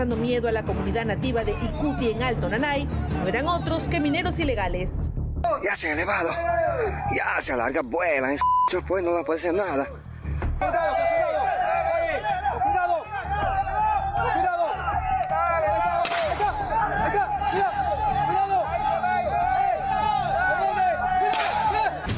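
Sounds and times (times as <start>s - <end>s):
speech: 0.0s - 10.0s, 10.6s - 11.1s
villagers shouting: 5.5s - 7.1s, 10.6s - 22.1s.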